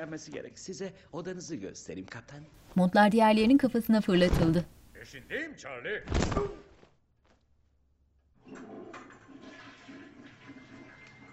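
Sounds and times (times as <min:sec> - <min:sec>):
speech: 0:00.0 - 0:06.6
toilet flushing in an audio drama: 0:08.4 - 0:11.3.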